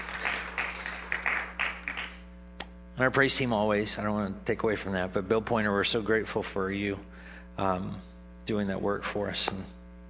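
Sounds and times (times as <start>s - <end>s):
audience applause: 0.0s - 2.2s
speech: 3.0s - 9.8s.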